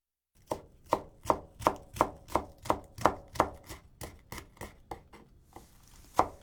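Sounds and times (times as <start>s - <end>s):
knife chopping green onions into long pieces on a board: 0.4s - 6.4s.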